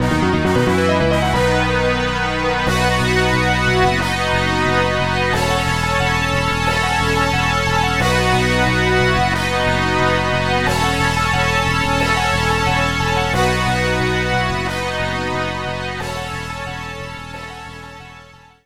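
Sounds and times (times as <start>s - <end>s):
battle end game background music: 0.0s - 18.6s.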